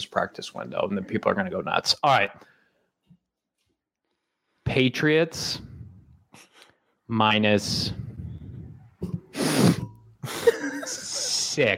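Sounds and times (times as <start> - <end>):
speech: 0.0 - 2.5, 4.7 - 5.7, 7.1 - 8.1, 11.6 - 11.7
person sniffing into a microphone: 9.1 - 10.5
laughter: 10.2 - 11.7.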